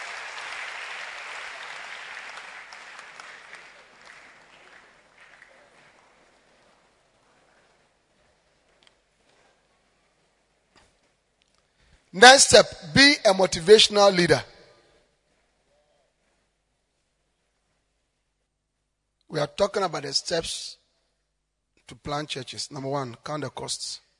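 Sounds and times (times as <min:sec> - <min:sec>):
audience clapping: 0:00.0 - 0:08.1
speech: 0:12.2 - 0:14.5, 0:19.6 - 0:20.8, 0:21.9 - 0:24.1.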